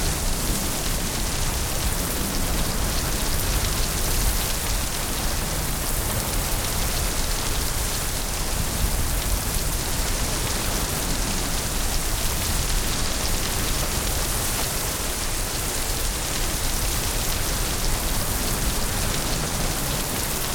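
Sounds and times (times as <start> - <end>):
heavy rain: 0.0 - 20.5.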